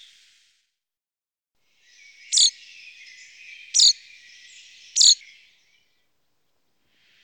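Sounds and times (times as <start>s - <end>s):
common chaffinch singing: 1.9s - 5.5s.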